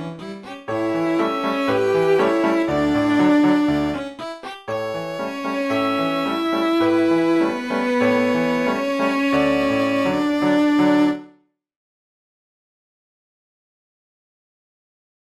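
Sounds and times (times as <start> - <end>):
piano trio playing: 0.0 - 11.3.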